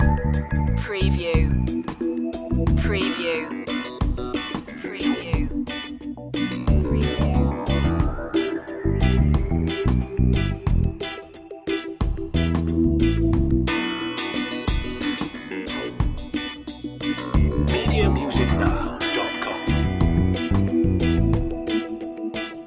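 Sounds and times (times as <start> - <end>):
dub music loop: 0.0 - 22.6.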